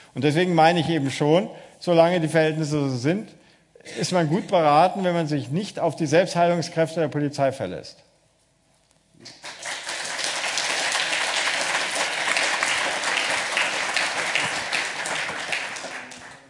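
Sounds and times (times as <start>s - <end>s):
speech: 0.2s - 8.1s, 9.2s - 9.5s
audience applause: 9.3s - 16.4s.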